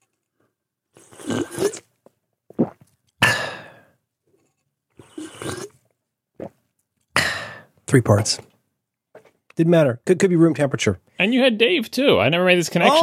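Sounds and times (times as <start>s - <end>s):
person imitating loud slurping sips of coffee: 1.0s - 1.9s, 2.5s - 3.7s, 5.0s - 5.8s
speech: 7.9s - 8.5s, 9.6s - 13.0s.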